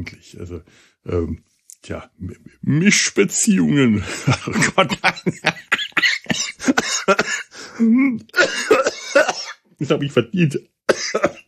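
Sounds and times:
speech: 0.0 - 11.4
laughter: 4.0 - 7.2
person coughing after choking on something swallowed: 5.5 - 9.7, 10.9 - 11.4.

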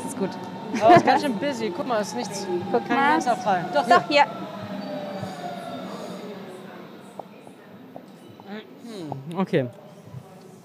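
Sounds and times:
new train rumbling at a station: 0.0 - 7.3
speech: 0.2 - 4.4, 9.3 - 9.8.

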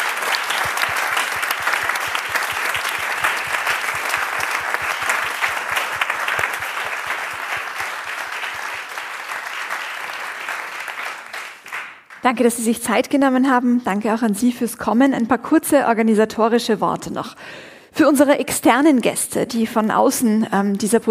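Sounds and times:
audience applause: 0.0 - 12.2
speech: 12.3 - 21.0.

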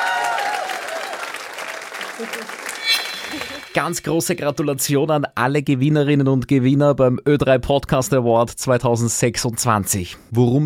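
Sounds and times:
audience applause for award winners: 0.0 - 3.7
speech: 2.2 - 2.6, 3.3 - 10.6.

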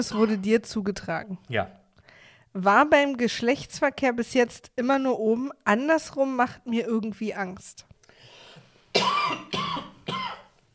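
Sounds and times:
person coughing after choking on something swallowed the wrong way: 0.0 - 0.5, 8.9 - 10.5
speech: 0.0 - 1.8, 2.5 - 7.9.

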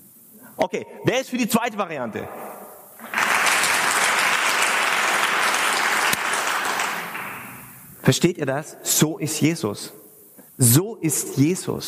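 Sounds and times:
speech: 0.6 - 2.5, 8.1 - 10.0, 10.6 - 11.8
audience applause: 3.0 - 7.6.

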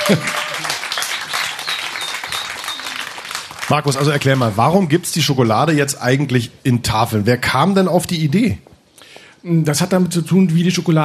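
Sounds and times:
applause: 0.0 - 4.7
speech: 0.1 - 0.4, 3.7 - 8.7, 9.4 - 11.0.

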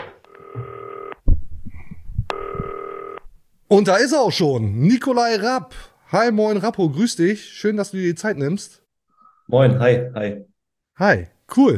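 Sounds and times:
telephone ringing: 0.0 - 1.2, 2.3 - 3.2
speech: 3.7 - 8.8, 9.5 - 11.7.

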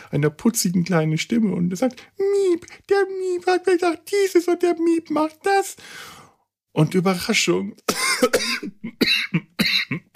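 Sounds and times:
speech: 0.1 - 6.2, 6.8 - 9.5
man coughing after choking while speaking: 7.8 - 10.1.

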